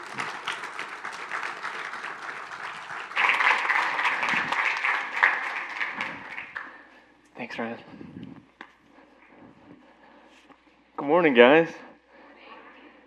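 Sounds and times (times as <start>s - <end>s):
audience applause welcoming a speaker: 0.0s - 7.0s
speech: 7.6s - 8.0s, 11.1s - 11.8s.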